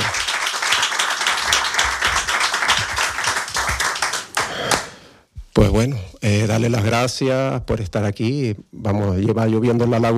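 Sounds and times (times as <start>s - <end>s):
audience applause: 0.0s - 4.9s
speech: 5.6s - 10.1s.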